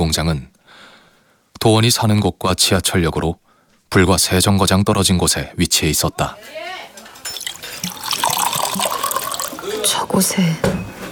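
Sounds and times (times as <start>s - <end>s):
speech: 0.1s - 0.5s, 1.6s - 6.8s, 9.8s - 10.9s
water being poured into a cup: 7.0s - 10.1s.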